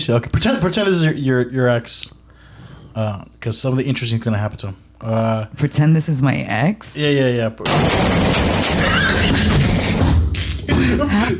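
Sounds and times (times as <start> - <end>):
speech: 0.0 - 2.2, 3.0 - 9.6, 10.7 - 11.3
karaoke machine exploding: 7.6 - 10.3.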